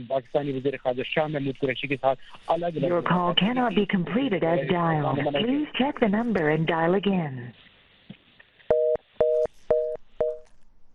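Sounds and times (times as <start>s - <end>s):
speech: 0.0s - 7.7s
faint low noise: 0.0s - 10.9s
loud telephone beeps after a dropped call: 8.7s - 10.5s.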